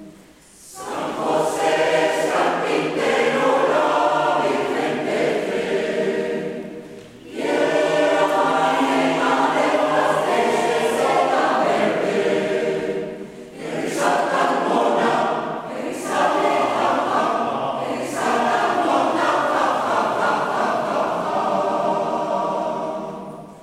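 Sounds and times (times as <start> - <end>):
Spanish Christmas carol: 0.0 - 23.6.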